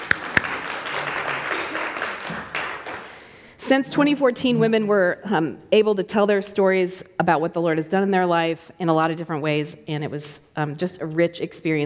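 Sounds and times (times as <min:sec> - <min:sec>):
audience clapping: 0:00.0 - 0:03.4
speech: 0:03.7 - 0:11.8.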